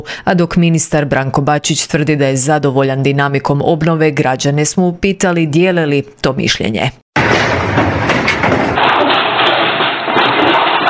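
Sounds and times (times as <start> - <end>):
speech: 0.0 - 7.6
earthquake rumble: 7.2 - 10.8
knocking thuds and rattling: 7.2 - 10.8.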